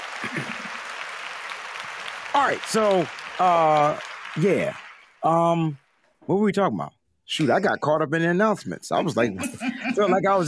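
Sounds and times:
round of applause: 0:00.0 - 0:05.9
laughter: 0:00.2 - 0:00.9, 0:09.0 - 0:10.4
speech: 0:02.4 - 0:10.4.

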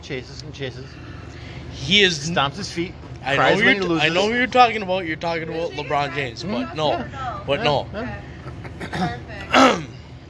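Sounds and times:
speech: 0:00.0 - 0:09.9
person clearing their throat: 0:08.6 - 0:10.0.

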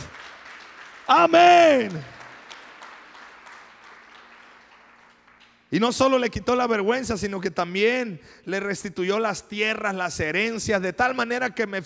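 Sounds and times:
audience applause: 0:00.0 - 0:05.6
speech: 0:01.1 - 0:02.1, 0:05.7 - 0:11.8.

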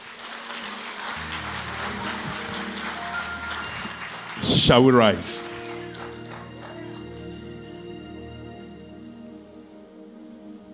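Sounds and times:
audience clapping: 0:00.0 - 0:08.0
speech: 0:04.6 - 0:05.5.

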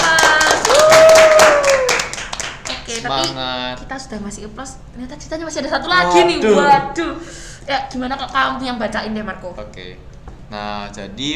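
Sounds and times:
friends applauding: 0:00.0 - 0:03.3
speech: 0:03.2 - 0:11.3.

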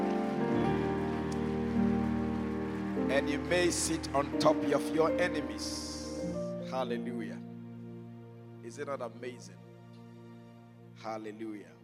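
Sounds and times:
crowd clapping: 0:00.0 - 0:06.3
sustained keyboard chords: 0:00.0 - 0:09.9
speech: 0:03.1 - 0:05.9, 0:06.7 - 0:07.5, 0:08.7 - 0:09.6, 0:11.0 - 0:11.8.

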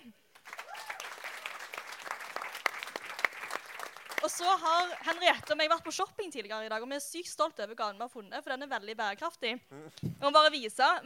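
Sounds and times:
audience applause: 0:00.4 - 0:05.5
speech: 0:04.2 - 0:11.0.

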